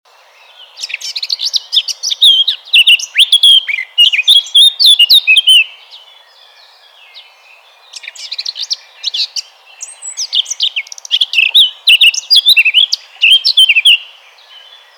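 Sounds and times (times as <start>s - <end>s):
Eurasian blackcap Sylvia atricapilla song with dense warbling, sharp chirps and fluty whistles: 0.1s - 14.9s.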